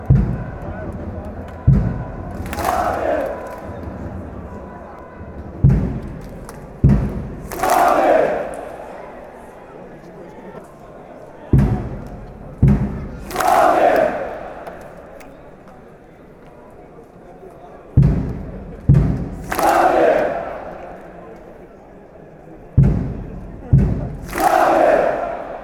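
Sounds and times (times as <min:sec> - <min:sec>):
drums: 0:00.0 - 0:08.2, 0:11.5 - 0:14.0, 0:18.0 - 0:20.4, 0:22.8 - 0:25.0
fans chanting: 0:00.0 - 0:16.0, 0:18.0 - 0:25.6.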